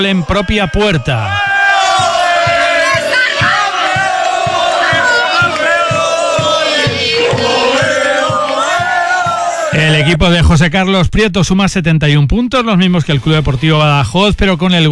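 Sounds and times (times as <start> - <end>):
speech: 0.0 - 1.5, 9.7 - 14.9
Don Benito football fans and players celebrating promotion: 0.0 - 10.6.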